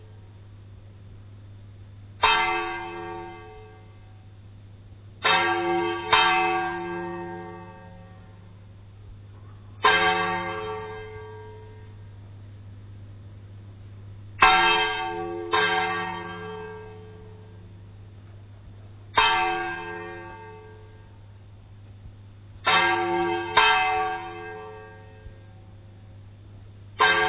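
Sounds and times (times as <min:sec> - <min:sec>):
bell: 0:05.2 - 0:08.6, 0:09.5 - 0:12.0, 0:14.4 - 0:17.6, 0:19.2 - 0:21.2, 0:22.6 - 0:25.7, 0:27.0 - 0:27.2.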